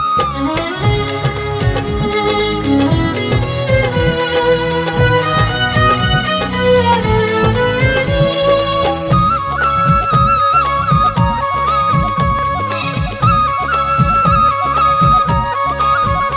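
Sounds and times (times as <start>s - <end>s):
music ringtone: 0.8s - 16.3s.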